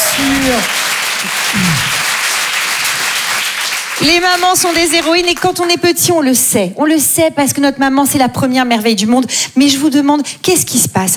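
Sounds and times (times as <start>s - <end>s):
audience applause at a French-language stage show: 0.0s - 5.4s
speech: 0.2s - 2.0s, 4.0s - 11.1s.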